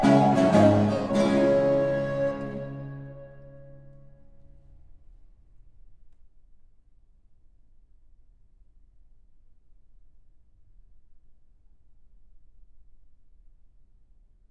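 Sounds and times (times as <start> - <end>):
fast sonata movement in D minor for two recorders: 0.0 - 3.1.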